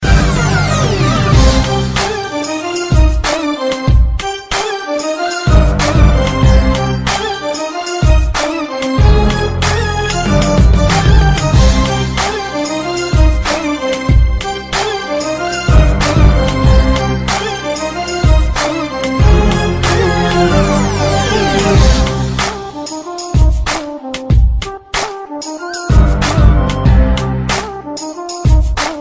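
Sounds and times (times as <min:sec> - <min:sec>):
Arabic style music: 0:00.0 - 0:29.0.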